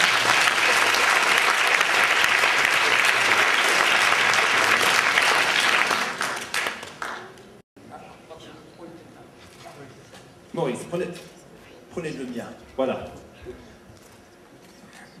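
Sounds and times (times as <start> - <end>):
audience applause: 0.0 - 7.6
speech: 12.8 - 13.2.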